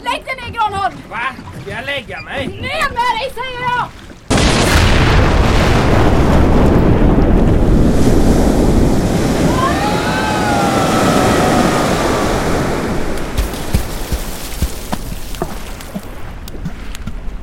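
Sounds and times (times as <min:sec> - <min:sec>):
speech: 0:00.2 - 0:04.0
huge wave crashing over boats: 0:04.3 - 0:15.1.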